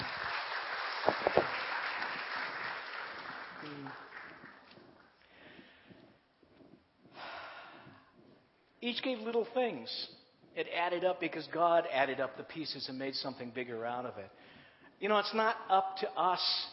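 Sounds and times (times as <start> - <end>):
room full of people clapping: 0.0 - 5.3
speech: 8.9 - 16.7.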